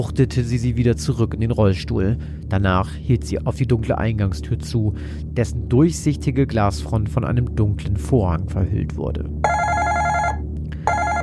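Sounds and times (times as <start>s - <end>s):
speech: 0.0s - 9.7s
ringing bell at the front door: 9.4s - 11.2s.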